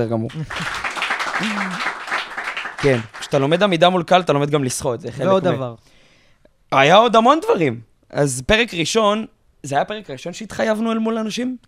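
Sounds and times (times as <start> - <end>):
speech: 0.0 - 2.0, 2.8 - 6.0, 6.7 - 11.6
live audience clapping: 0.3 - 3.6
laughter: 0.4 - 2.0.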